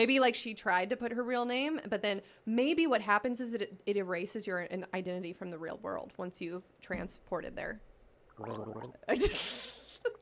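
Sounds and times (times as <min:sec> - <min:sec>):
speech: 0:00.0 - 0:10.1
person gargling water: 0:08.3 - 0:09.2.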